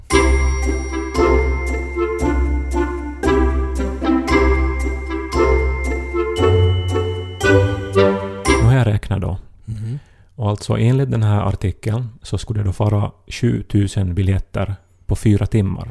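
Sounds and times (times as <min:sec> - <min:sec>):
instrumental thinking-music jingle: 0:00.0 - 0:08.9
speech: 0:10.5 - 0:15.8.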